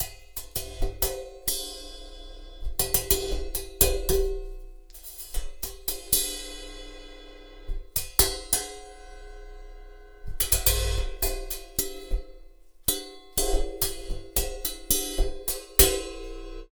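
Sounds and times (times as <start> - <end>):
cymbal: 0.0 - 16.6.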